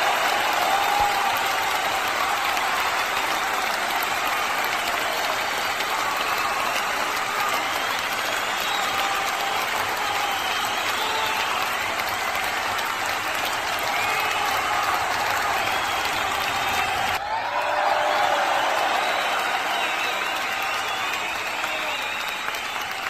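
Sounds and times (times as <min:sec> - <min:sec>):
applause: 0:00.0 - 0:23.0.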